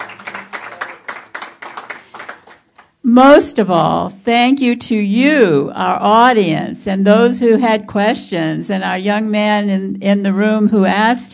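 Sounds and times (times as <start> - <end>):
audience applause at an environment and natural resources forum: 0.0 - 2.9
speech: 3.0 - 11.3.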